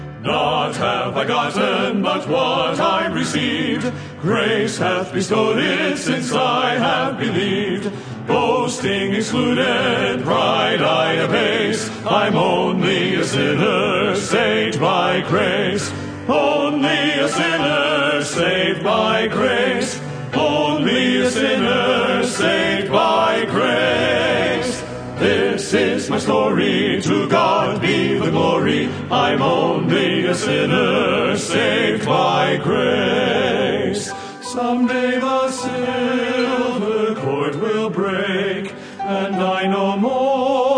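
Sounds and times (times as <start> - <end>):
male vocal quartet: 0.1 - 40.7.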